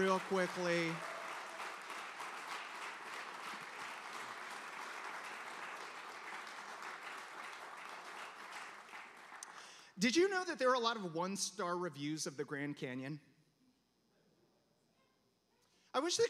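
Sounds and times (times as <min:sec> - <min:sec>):
speech: 0:00.0 - 0:01.1, 0:10.0 - 0:13.3, 0:15.9 - 0:16.2
audience applause: 0:00.0 - 0:09.8.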